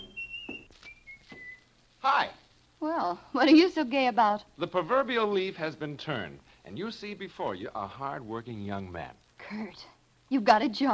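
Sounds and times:
man whistling a tune: 0.0s - 1.7s
speech: 2.0s - 10.9s.

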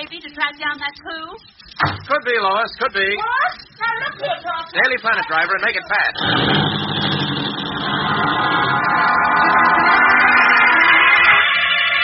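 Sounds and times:
speech: 0.1s - 7.4s
taxi engine driving off: 6.2s - 11.4s.

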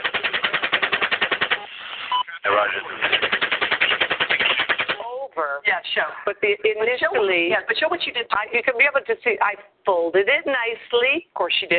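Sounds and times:
automatic gunfire: 0.0s - 1.7s, 3.0s - 5.0s
speech: 2.6s - 3.4s, 5.4s - 11.7s.

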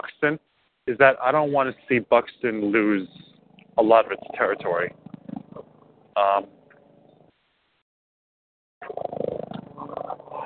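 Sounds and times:
speech: 0.0s - 5.0s, 6.2s - 6.6s
helicopter flying overhead: 1.2s - 7.0s.

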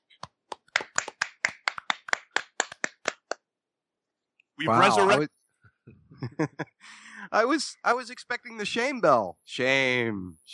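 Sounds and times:
round of applause: 0.5s - 3.4s
laughter: 4.6s - 5.2s, 6.1s - 6.9s
speech: 4.6s - 10.5s.

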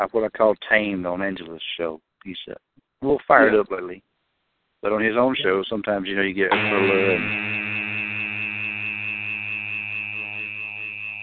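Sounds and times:
speech: 0.0s - 4.1s, 4.8s - 7.8s
electric shaver buzzing: 6.5s - 11.2s.

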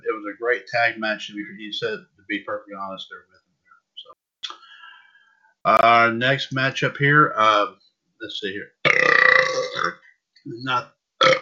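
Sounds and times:
speech: 0.2s - 3.4s, 5.6s - 11.0s
loud deep burps after sparkling water: 8.8s - 10.0s, 10.7s - 11.3s.

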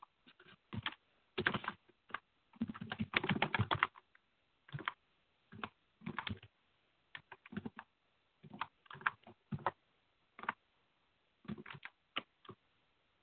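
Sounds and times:
typing on a computer keyboard: 0.7s - 4.0s, 4.7s - 5.0s, 5.5s - 6.5s, 7.1s - 7.9s, 8.5s - 9.7s, 11.5s - 12.3s.

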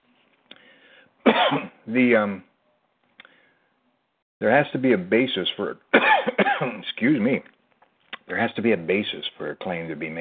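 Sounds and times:
person coughing: 1.3s - 1.8s, 6.0s - 6.8s
throat clearing: 1.3s - 1.8s
speech: 1.4s - 2.5s, 4.4s - 7.5s, 8.3s - 10.1s.

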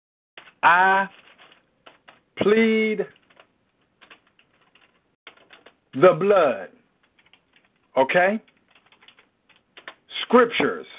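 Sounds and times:
keyboard typing a scripture search into Google: 0.4s - 2.2s, 3.1s - 5.8s, 7.0s - 10.1s
speech: 0.6s - 1.2s, 2.4s - 3.2s, 6.0s - 6.8s, 8.0s - 8.5s, 10.3s - 10.9s.

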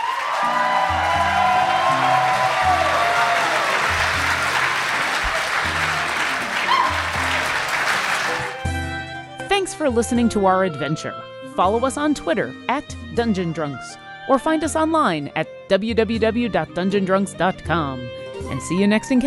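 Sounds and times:
crowd applauding: 0.0s - 8.7s
speech: 9.7s - 19.2s.

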